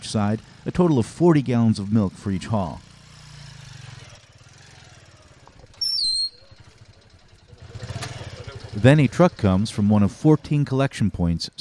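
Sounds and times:
motorcycle engines puttering, laden with milk churns: 0.0 - 11.5
speech: 0.1 - 2.9, 8.8 - 11.5
shrill whistle-like tone: 5.8 - 6.6.

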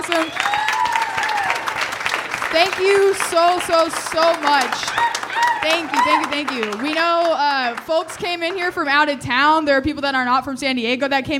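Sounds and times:
speech: 0.0 - 0.8, 2.5 - 11.3
cheers and whistles: 0.0 - 1.8, 4.4 - 6.7
crowd applauding: 0.0 - 9.2.

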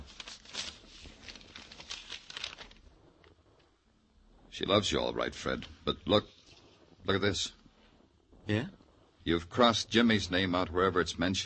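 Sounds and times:
letter paper rustling as it is pulled out of its envelope: 0.0 - 3.4
speech: 4.6 - 6.4, 7.0 - 7.6, 8.5 - 11.4.

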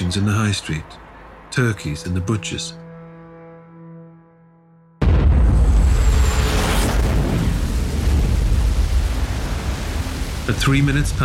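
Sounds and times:
speech: 0.1 - 2.8, 10.5 - 11.2
enormous explosion: 5.0 - 11.2.

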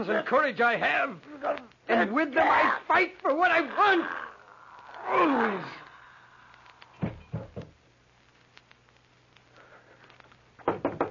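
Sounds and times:
speech: 0.0 - 4.2, 5.0 - 5.8
firm knocking on a door: 10.6 - 11.1.

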